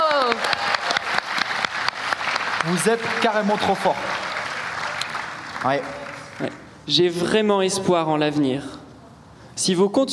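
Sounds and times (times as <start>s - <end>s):
audience applause: 0.0s - 6.7s
speech: 2.6s - 4.2s, 5.6s - 8.8s, 9.6s - 10.1s.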